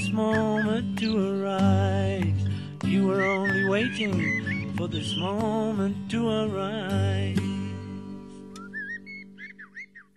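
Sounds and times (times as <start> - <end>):
common blackbird fluted whistled song: 0.0 - 1.6, 2.9 - 5.8, 8.5 - 10.1
speech: 0.2 - 1.9, 3.1 - 7.5.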